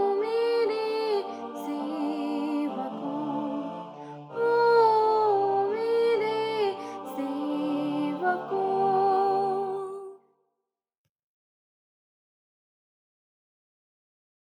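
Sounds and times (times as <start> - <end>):
choral music: 0.0 - 10.2
native Hindi soprano singing: 0.0 - 10.2.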